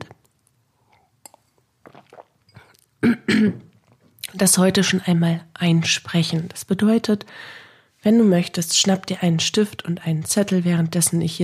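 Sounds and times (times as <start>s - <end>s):
person sipping water: 0.1s - 3.0s, 3.6s - 4.3s
speech: 3.0s - 3.6s, 4.4s - 11.4s
rough throat-clearing coughs: 3.0s - 3.7s.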